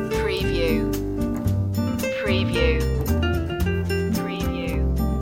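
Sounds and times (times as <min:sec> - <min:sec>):
music loop: 0:00.1 - 0:01.0, 0:02.0 - 0:05.0.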